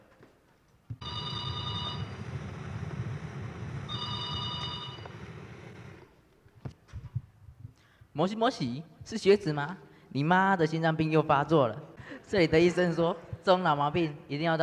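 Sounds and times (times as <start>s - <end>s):
telephone ringing: 1.0s - 2.4s, 3.9s - 6.0s
speech: 8.2s - 14.6s.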